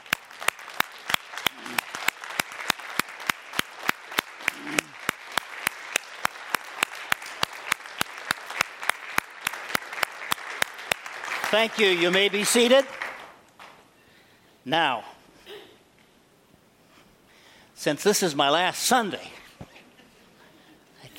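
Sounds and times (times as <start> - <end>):
audience applauding: 0.0 - 13.7
speech: 11.5 - 13.0, 14.6 - 15.1, 17.8 - 19.4.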